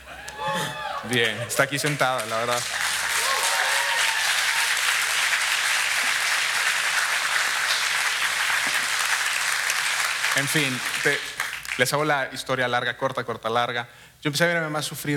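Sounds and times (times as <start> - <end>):
person whooping: 0.0 - 1.5, 3.2 - 4.8
audience applause: 0.3 - 11.8
speech: 1.0 - 2.8, 10.4 - 15.1.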